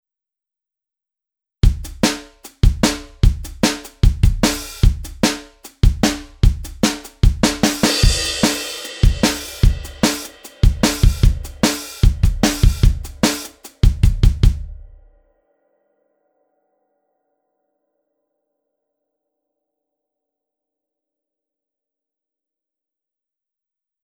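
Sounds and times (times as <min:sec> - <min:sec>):
drums: 0:01.6 - 0:15.1.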